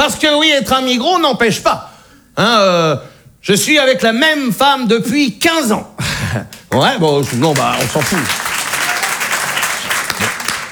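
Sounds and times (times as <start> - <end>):
speech: 0.1 - 8.4
audience applauding: 6.5 - 10.7.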